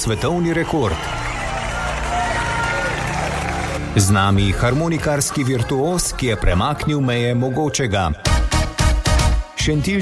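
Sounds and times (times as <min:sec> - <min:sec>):
speech: 0:00.0 - 0:01.3, 0:03.9 - 0:08.3, 0:09.6 - 0:10.0
audience applauding: 0:00.0 - 0:05.6.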